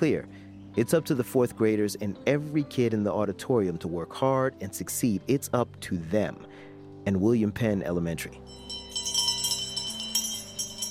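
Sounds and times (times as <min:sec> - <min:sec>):
speech: 0:00.0 - 0:08.6
school bell ringing: 0:08.5 - 0:10.8.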